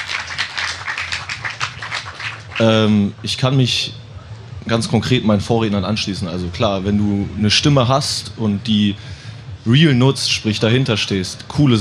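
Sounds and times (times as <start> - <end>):
audience applause: 0.0 - 2.9
speech: 2.6 - 4.0, 4.6 - 11.7.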